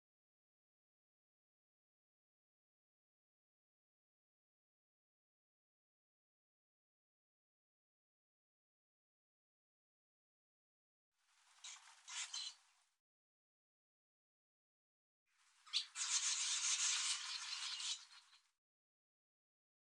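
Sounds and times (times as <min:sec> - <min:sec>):
barn swallow giving short sharp chirping calls: 0:11.5 - 0:12.6, 0:15.6 - 0:18.5.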